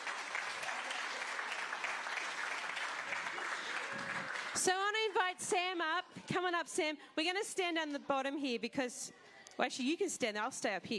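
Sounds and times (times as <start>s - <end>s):
audience clapping: 0.0s - 4.8s
speech: 4.6s - 10.9s.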